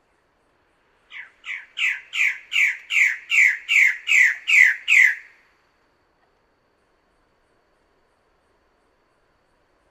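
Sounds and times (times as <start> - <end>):
Bird-of-paradise call: 1.1 - 5.3.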